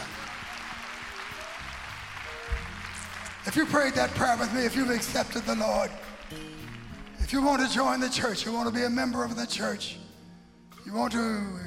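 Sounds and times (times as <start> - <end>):
audience clapping hands: 0.0 - 8.6
speech: 3.4 - 6.7, 7.3 - 10.0, 10.8 - 11.6.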